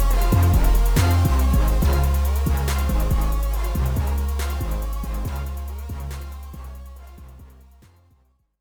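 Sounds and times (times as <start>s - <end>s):
person singing: 0.0s - 6.5s.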